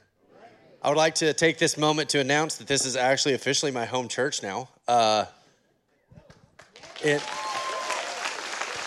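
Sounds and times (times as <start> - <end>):
speech: 0.8 - 5.4, 7.0 - 7.4
audience cheering and clapping: 6.3 - 8.8.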